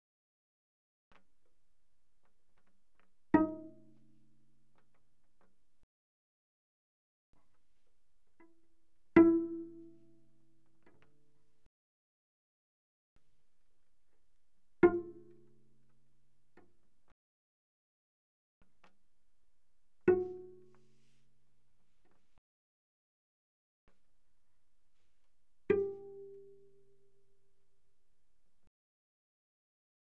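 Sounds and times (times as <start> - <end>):
cello pizzicato mezzo-forte on the G string: 2.6 - 5.6, 7.4 - 11.7, 14.1 - 16.9, 19.8 - 22.4, 24.2 - 28.6.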